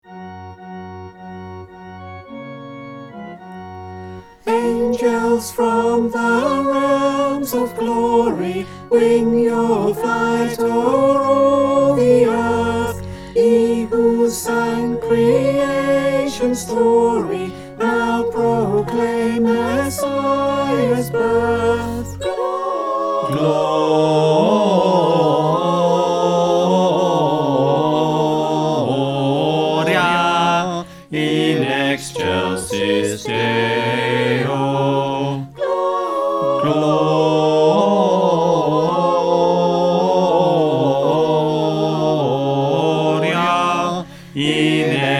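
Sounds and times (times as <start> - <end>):
bass: 0.0 - 22.3
choir singing: 0.0 - 45.1.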